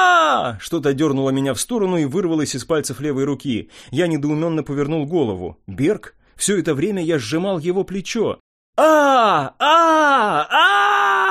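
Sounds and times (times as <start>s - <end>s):
man wailing in agony: 0.0s - 0.6s, 8.8s - 11.2s
speech: 0.4s - 11.1s.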